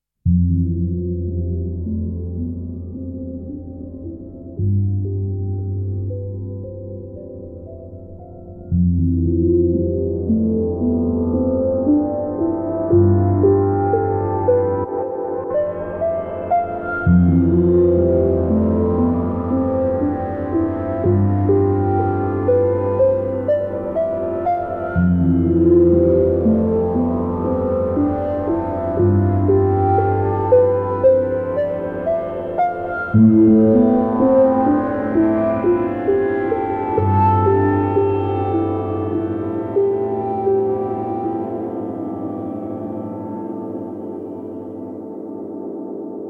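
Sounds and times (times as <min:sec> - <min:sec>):
filtered grand piano: 0:00.2 - 0:46.2.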